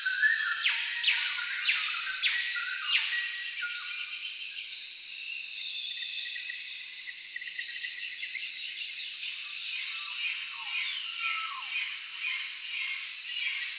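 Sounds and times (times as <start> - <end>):
jungle ambience: 0.0 - 13.7.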